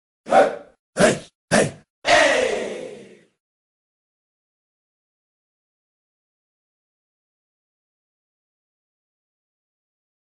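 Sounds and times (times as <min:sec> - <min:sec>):
hip hop voice shouting hey: 0:00.3 - 0:03.2.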